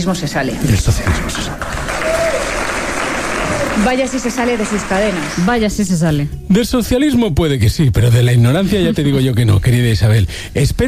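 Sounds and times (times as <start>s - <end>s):
speech: 0.0s - 2.2s, 3.8s - 10.8s
audience applause: 0.8s - 5.6s.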